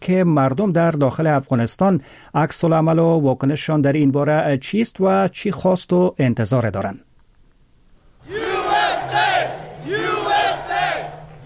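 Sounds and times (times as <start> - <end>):
speech: 0.1 - 7.1
crowd of supporters cheering: 8.1 - 11.4.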